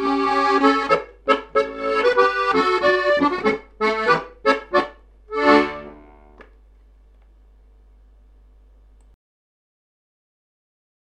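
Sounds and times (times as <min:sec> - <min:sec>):
polka music: 0:00.0 - 0:06.5.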